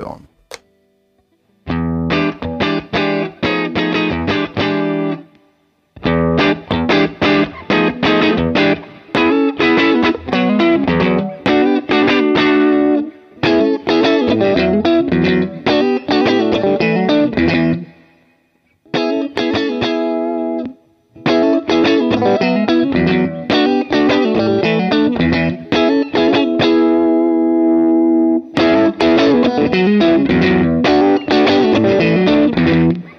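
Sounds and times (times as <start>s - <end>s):
electric guitar through a mildly overdriven blues breaker pedal: 0.5s - 33.1s.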